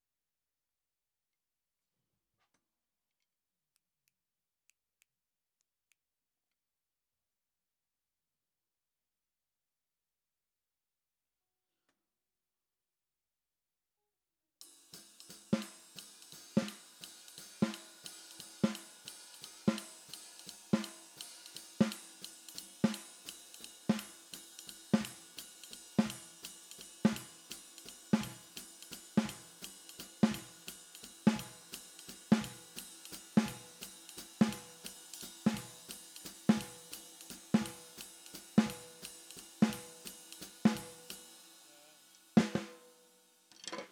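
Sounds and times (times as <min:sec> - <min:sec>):
snare drum: 0:14.6 - 0:43.2.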